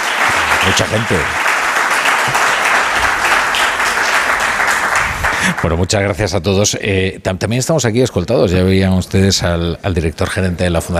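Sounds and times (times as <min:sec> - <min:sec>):
audience applause: 0:00.0 - 0:05.9
speech: 0:00.7 - 0:01.6, 0:05.4 - 0:10.9.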